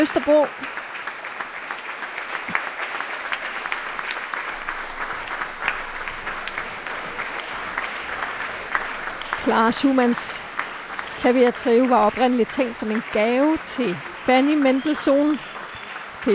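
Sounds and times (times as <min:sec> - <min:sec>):
speech: 0:00.0 - 0:00.7, 0:09.5 - 0:10.5, 0:11.2 - 0:15.5
audience applause after concert performance: 0:00.0 - 0:16.3.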